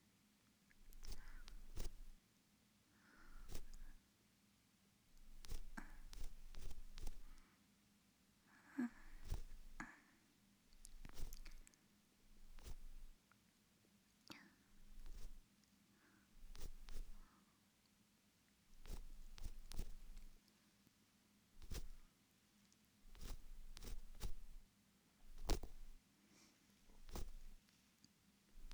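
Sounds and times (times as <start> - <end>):
ear cleaning in the right ear: 0.9 - 2.2, 3.4 - 4.0, 5.2 - 7.4, 9.0 - 9.8, 10.8 - 11.6, 12.4 - 13.2, 14.8 - 15.4, 16.4 - 17.2, 18.8 - 20.4, 21.6 - 22.0, 23.1 - 24.6, 25.3 - 26.0, 27.0 - 27.6, 28.6 - 28.7.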